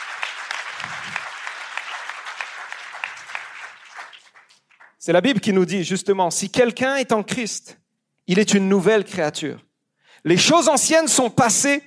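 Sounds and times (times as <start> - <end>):
audience applauding: 0.0 - 5.0
speech: 5.0 - 11.8.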